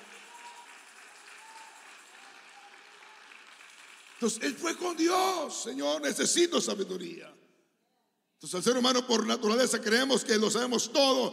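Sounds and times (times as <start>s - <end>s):
audience applause: 0.0s - 5.0s
speech: 4.2s - 7.4s, 8.4s - 11.3s.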